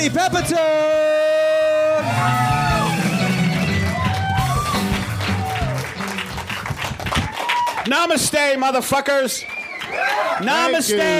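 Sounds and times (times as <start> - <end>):
speech: 0.0 - 1.4, 2.2 - 2.6, 7.9 - 9.5, 10.1 - 11.1
audience clapping at a live comedy show: 2.3 - 11.1.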